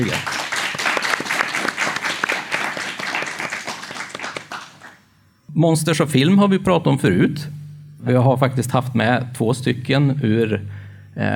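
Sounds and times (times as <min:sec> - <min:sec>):
applause: 0:00.0 - 0:05.0
speech: 0:05.6 - 0:11.3.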